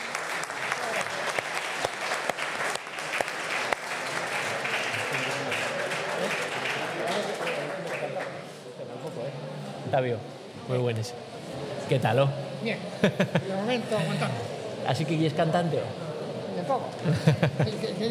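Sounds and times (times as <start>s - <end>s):
audience applause: 0.0s - 8.6s
speech: 9.9s - 11.3s, 11.9s - 16.0s, 16.6s - 18.0s
laughter: 12.9s - 14.6s, 17.0s - 18.0s.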